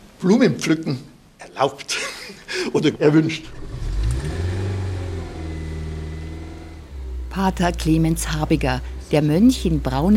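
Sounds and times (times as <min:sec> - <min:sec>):
speech: 0:00.2 - 0:03.6, 0:07.4 - 0:10.1
laughter: 0:01.9 - 0:03.4
small car engine revving and pulling away: 0:03.5 - 0:10.1.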